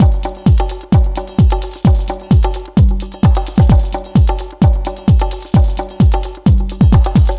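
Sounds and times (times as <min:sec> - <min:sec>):
house music: 0:00.0 - 0:07.3.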